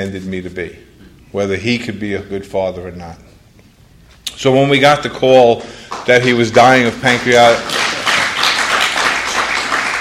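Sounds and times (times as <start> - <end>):
speech: 0.0 - 3.3, 4.4 - 7.8
audience clapping: 5.4 - 9.9.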